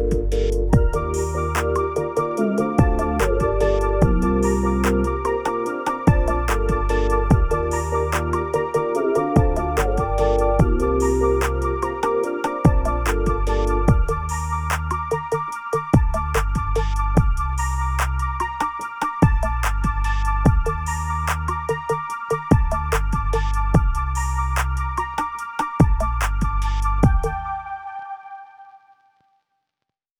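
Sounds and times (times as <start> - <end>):
RnB beat: 0.0 - 27.4.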